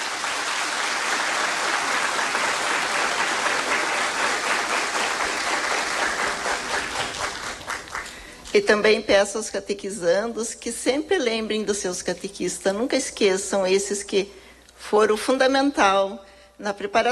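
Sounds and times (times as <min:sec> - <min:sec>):
audience applause: 0:00.0 - 0:08.5
speech: 0:08.6 - 0:17.1.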